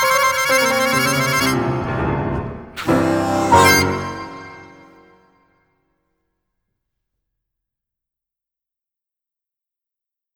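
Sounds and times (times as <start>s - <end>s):
harmonica: 0.0s - 5.2s.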